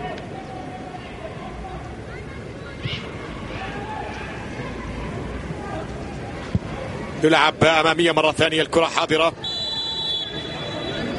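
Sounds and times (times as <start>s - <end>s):
crowd murmur: 0.0s - 11.1s
speech: 7.2s - 9.4s
referee's whistle blast: 9.4s - 11.1s.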